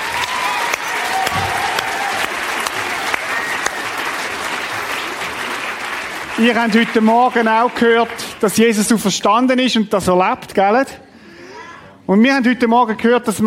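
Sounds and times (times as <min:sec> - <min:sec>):
audience applause: 0:00.0 - 0:08.6
speech: 0:06.4 - 0:11.0, 0:12.1 - 0:13.4.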